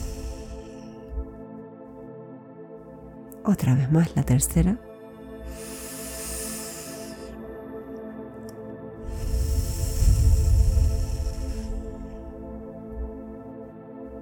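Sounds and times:
slow deep breathing in breath exercise: 0.0 - 1.4, 5.3 - 7.9, 8.8 - 14.2
soft sustained musical drone: 0.0 - 14.2
speech: 3.4 - 4.9.

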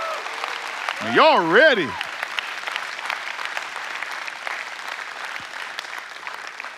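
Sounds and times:
audience applause: 0.0 - 6.7
speech: 1.0 - 2.1.

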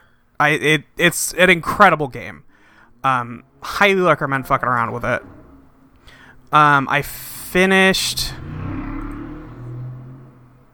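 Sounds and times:
speech: 0.4 - 5.4, 6.5 - 8.5
large vehicle driving past: 2.6 - 10.7.

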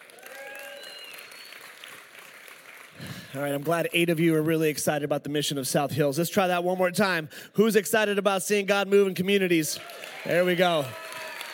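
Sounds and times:
audience applause: 0.0 - 3.6, 9.8 - 11.5
speech: 3.3 - 11.0.

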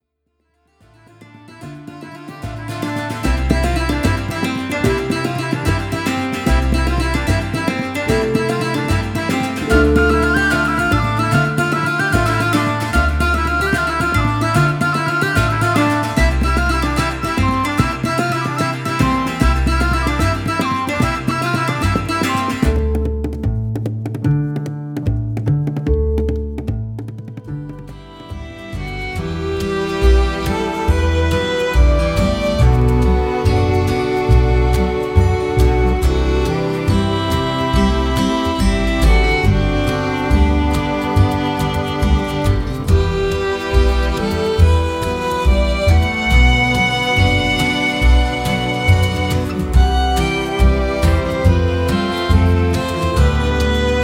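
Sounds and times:
folk reel music: 0.8 - 54.0.

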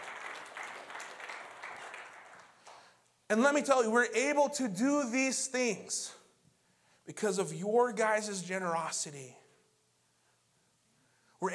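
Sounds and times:
audience clapping: 0.0 - 3.0
speech: 3.3 - 6.2, 7.1 - 9.4, 11.4 - 11.5.

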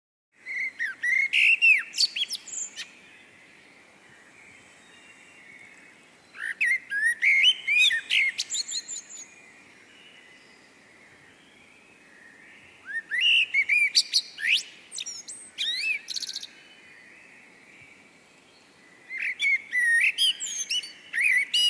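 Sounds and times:
blackbird whistling: 0.4 - 2.9, 6.4 - 9.3, 12.8 - 16.5, 19.1 - 21.6.

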